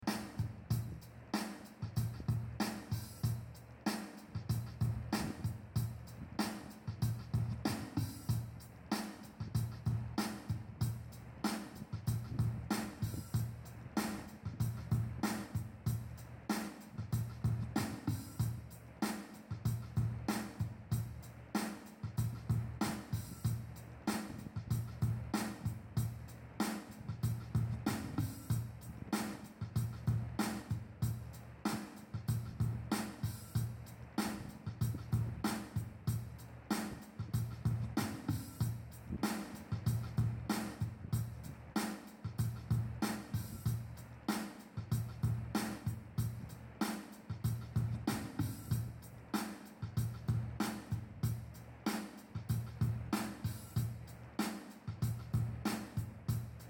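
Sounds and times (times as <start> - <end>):
folk verse music: 0.0 - 56.6.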